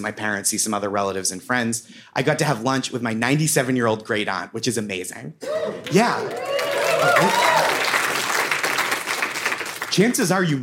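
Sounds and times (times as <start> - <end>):
speech: 0.0 - 7.8, 10.0 - 10.6
audience applause: 5.7 - 10.1.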